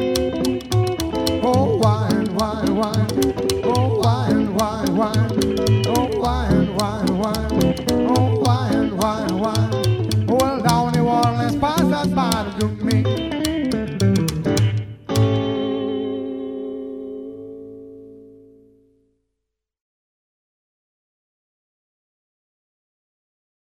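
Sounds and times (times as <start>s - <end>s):
rockabilly duet: 0.0s - 18.0s.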